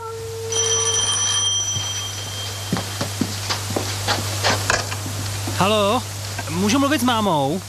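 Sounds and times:
steady low telephone line hum: 0.0 - 6.7
telephone ringing with bright electronic tone: 0.5 - 3.9
speech: 5.6 - 7.6.

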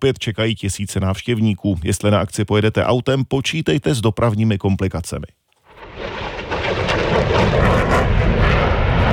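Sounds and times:
speech: 0.0 - 5.4
airplanes flying at an air show: 5.8 - 9.1.

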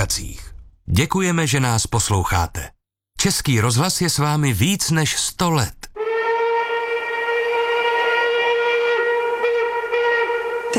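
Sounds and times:
speech: 0.0 - 5.9
express train whistle: 6.0 - 10.7.

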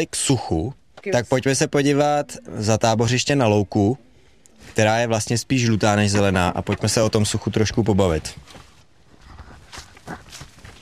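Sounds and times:
speech: 0.0 - 8.6
footsteps crossing a parched dry meadow with hard clay-like ground: 8.1 - 10.8.

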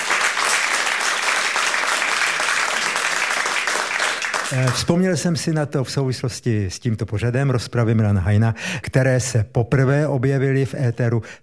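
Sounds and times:
audience applause: 0.0 - 4.9
speech: 4.5 - 11.4.

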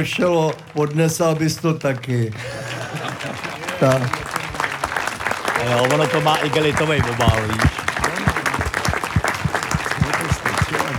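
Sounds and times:
speech: 0.0 - 4.3, 5.6 - 7.8
audience applause in Příchovice: 1.4 - 10.9
laughter: 2.4 - 4.6, 5.6 - 10.9.

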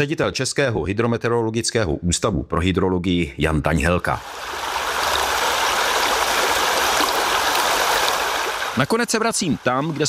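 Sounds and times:
speech: 0.0 - 4.6, 8.8 - 10.0
river water flowing at the riverbank: 4.2 - 10.0.

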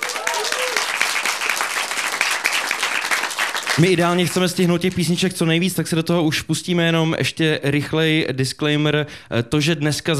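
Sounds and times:
audience applause: 0.0 - 4.2
speech: 3.8 - 10.1.

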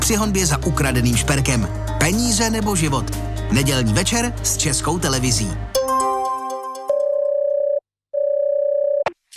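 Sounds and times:
speech: 0.1 - 5.8
telephone ringing tone: 6.9 - 9.1.

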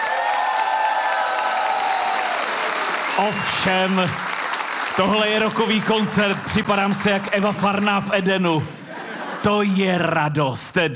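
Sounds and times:
applause from a packed cultural hall audience: 0.0 - 8.5
speech: 3.2 - 4.3, 5.0 - 8.8, 9.4 - 10.9
laughter: 8.6 - 10.2.

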